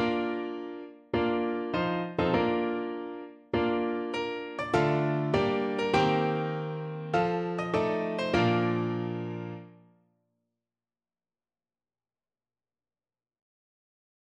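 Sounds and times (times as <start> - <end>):
bridal march on piano: 0.0 - 9.7.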